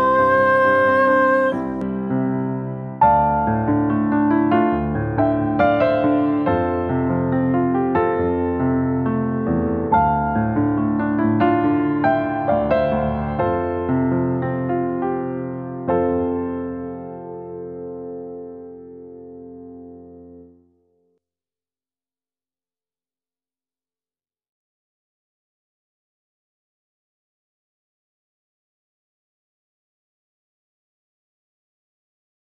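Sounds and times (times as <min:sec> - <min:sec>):
piano: 0:00.0 - 0:21.2.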